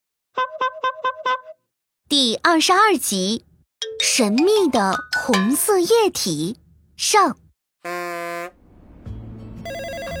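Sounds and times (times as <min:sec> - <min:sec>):
speech: 0:02.1 - 0:08.0
telephone ringing from a panda-shaped building: 0:09.7 - 0:10.1.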